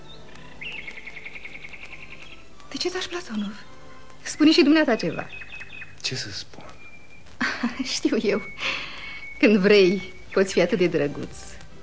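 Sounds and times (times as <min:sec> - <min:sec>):
nightingale singing: 0:00.0 - 0:11.8
speech: 0:02.7 - 0:05.4, 0:06.0 - 0:06.6, 0:07.6 - 0:11.5.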